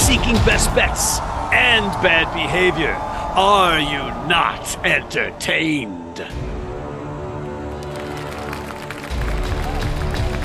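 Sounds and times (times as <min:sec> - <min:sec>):
speech: 0:00.1 - 0:06.6
applause: 0:07.6 - 0:10.4.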